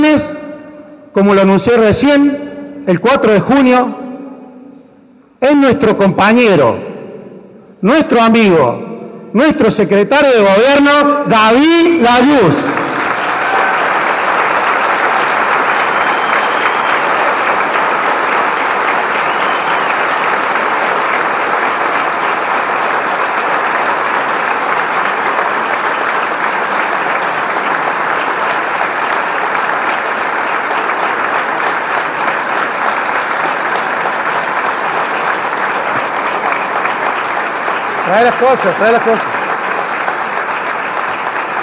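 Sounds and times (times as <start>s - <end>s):
speech: 1.2s - 4.0s, 5.4s - 6.9s, 7.8s - 12.7s, 38.3s - 39.3s
audience applause: 12.2s - 41.6s.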